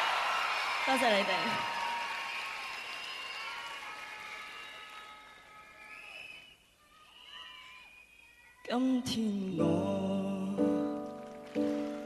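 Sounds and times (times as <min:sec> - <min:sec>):
audience applause: 0:00.0 - 0:06.4, 0:10.9 - 0:12.0
audience screaming: 0:00.0 - 0:08.4
speech: 0:00.8 - 0:01.8, 0:08.7 - 0:10.7.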